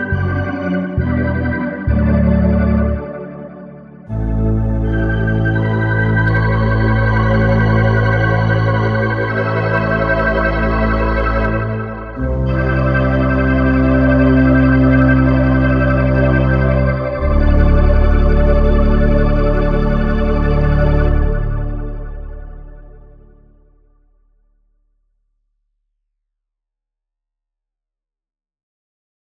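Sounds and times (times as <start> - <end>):
Hammond organ and Wurlitzer playing: 0.0 - 22.7.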